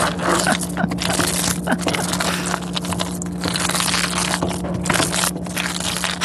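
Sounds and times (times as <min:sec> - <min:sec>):
cheese sauce cooking: 0:00.0 - 0:06.2.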